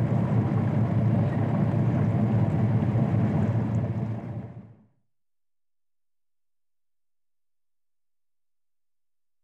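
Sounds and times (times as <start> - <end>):
barge moving slowly: 0.0 - 4.8.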